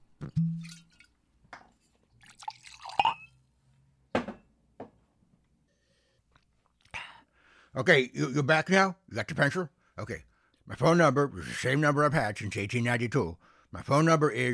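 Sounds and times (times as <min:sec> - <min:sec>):
person drinking: 0:02.2 - 0:03.0
speech: 0:07.8 - 0:14.5.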